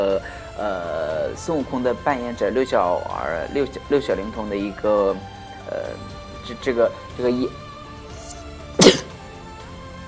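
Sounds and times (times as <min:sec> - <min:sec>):
speech: 0:00.1 - 0:07.6
sneeze: 0:08.2 - 0:09.2.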